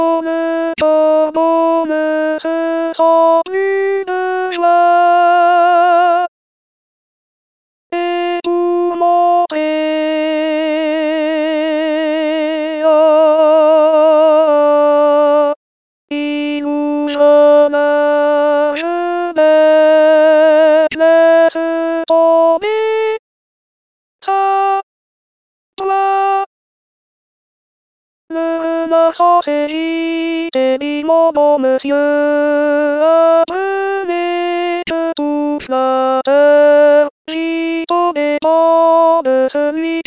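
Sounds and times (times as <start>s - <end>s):
alto voice singing a chorale: 0.0s - 6.3s, 7.9s - 23.2s, 24.2s - 24.9s, 25.8s - 26.5s, 28.3s - 40.0s.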